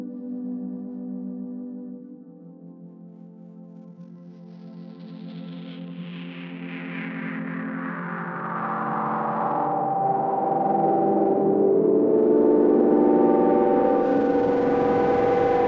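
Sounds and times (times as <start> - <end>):
noise: 7.7 - 15.6.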